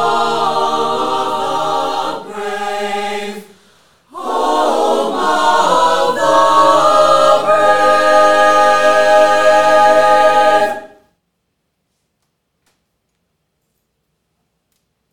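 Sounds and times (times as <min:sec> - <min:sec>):
concert choir singing: 0:00.0 - 0:11.1.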